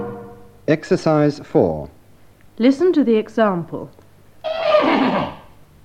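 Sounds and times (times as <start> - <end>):
speech: 0.8 - 2.0, 2.6 - 5.3
horse neighing: 4.4 - 5.6.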